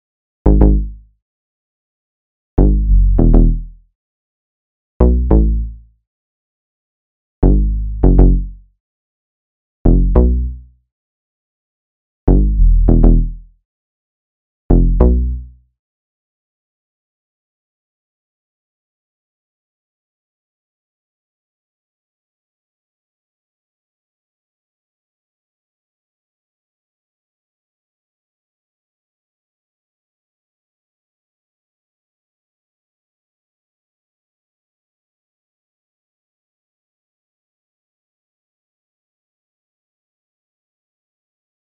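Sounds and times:
bass line in C sharp minor: 0.5 - 1.0, 2.6 - 3.8, 5.0 - 5.8, 7.4 - 8.6, 9.9 - 10.6, 12.3 - 13.4, 14.7 - 15.5.

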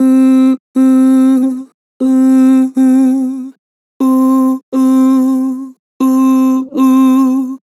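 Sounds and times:
Harmor vocal ooh with vibrato: 0.0 - 7.6.

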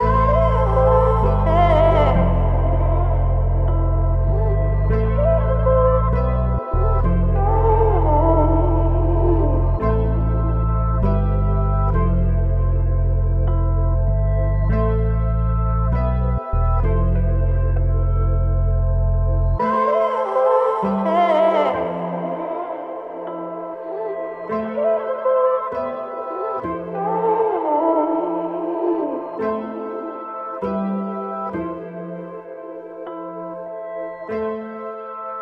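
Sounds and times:
98 BPM A minor melody loops: 0.0 - 35.3.

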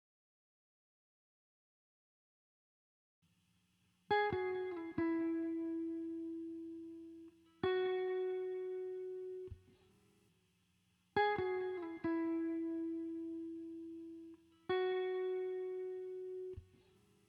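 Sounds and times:
guitar layer loop in E major at 136 BPM: 4.1 - 10.2, 11.2 - 17.2.

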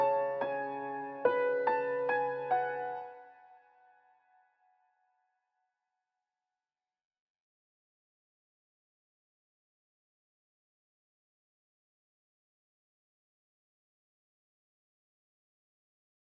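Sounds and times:
trap piano melody loop in F sharp minor at 143 BPM: 0.0 - 3.2.

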